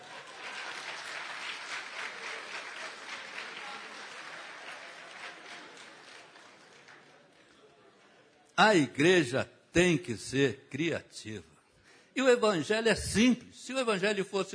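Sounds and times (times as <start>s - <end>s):
crowd applauding: 0.0s - 7.7s
speech: 8.6s - 11.5s, 12.2s - 14.5s.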